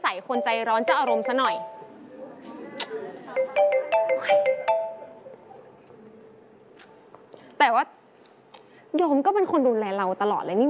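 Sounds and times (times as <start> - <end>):
speech: 0.2 - 1.8, 7.6 - 8.0, 8.9 - 10.6
phone ringtone electronic melody: 0.3 - 2.0, 3.4 - 5.3.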